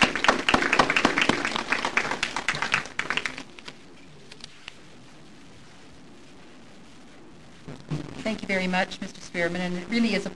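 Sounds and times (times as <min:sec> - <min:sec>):
audience applause welcoming speakers at a presentation: 0:00.0 - 0:03.6
speech: 0:08.3 - 0:10.3.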